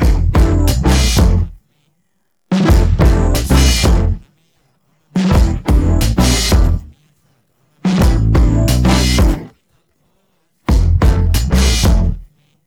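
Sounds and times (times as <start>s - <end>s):
instrumental music: 0.0s - 1.6s, 2.6s - 4.2s, 5.2s - 6.9s, 7.9s - 9.5s, 10.7s - 12.3s.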